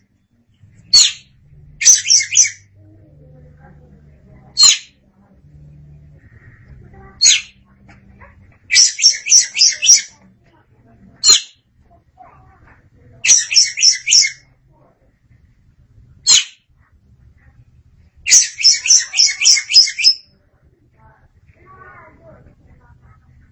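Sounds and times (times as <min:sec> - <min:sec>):
oriental magpie-robin harsh grating calls: 0:00.9 - 0:02.7, 0:06.2 - 0:07.6, 0:08.7 - 0:10.1, 0:13.2 - 0:14.4, 0:18.3 - 0:20.2.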